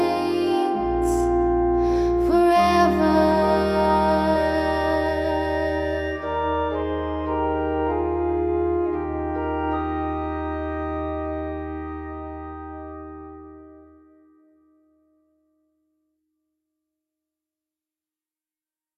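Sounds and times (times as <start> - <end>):
person singing: 0.0 - 7.4
organ: 0.0 - 14.2.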